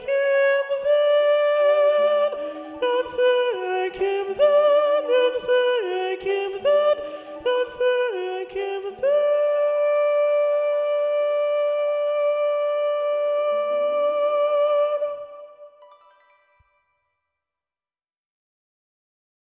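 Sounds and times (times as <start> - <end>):
first soprano voice singing: 0.0 - 15.8
SSA choir singing a spring carol: 0.6 - 11.0.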